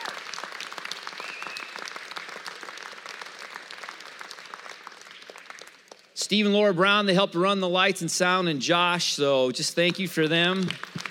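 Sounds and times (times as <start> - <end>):
audience round of applause: 0.0 - 6.1, 10.5 - 11.0
speech: 6.2 - 10.9.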